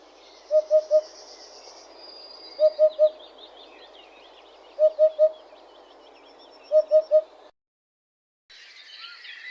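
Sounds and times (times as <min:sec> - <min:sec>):
Eurasian hoopoe calling: 0:00.5 - 0:01.2, 0:02.6 - 0:03.2, 0:04.8 - 0:05.4, 0:06.7 - 0:07.4.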